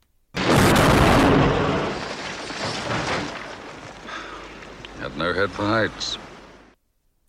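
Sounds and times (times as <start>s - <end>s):
car crashing over a cliff: 0.4s - 4.1s
grinding metal and rumbling debris: 0.4s - 5.2s
speech: 5.2s - 6.2s.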